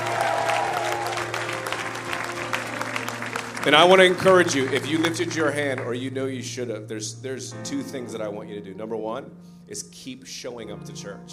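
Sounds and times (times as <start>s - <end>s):
cheers and whoops: 0.0s - 2.3s
crowd clapping: 0.0s - 6.1s
speech: 3.6s - 11.3s.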